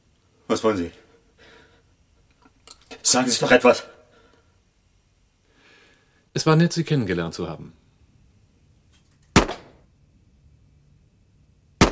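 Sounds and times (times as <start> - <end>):
speech: 0.5 - 1.0, 3.1 - 4.0, 6.4 - 7.8
gunshots: 9.4 - 9.8.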